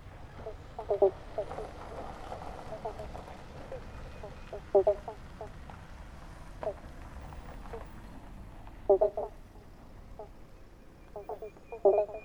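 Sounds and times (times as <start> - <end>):
frogs on Kangaroo Island Australia: 0.3 - 2.0, 2.7 - 5.6, 6.6 - 6.9, 8.8 - 12.2.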